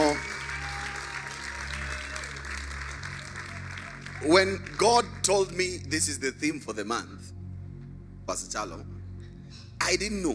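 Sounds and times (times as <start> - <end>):
audience clapping: 0.0 - 5.9
speech: 4.2 - 7.4, 8.3 - 8.9, 9.9 - 10.3.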